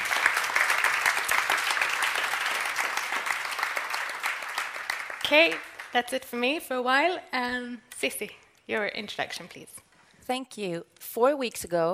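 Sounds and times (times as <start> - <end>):
audience applause: 0.0 - 5.9
speech: 5.3 - 11.9.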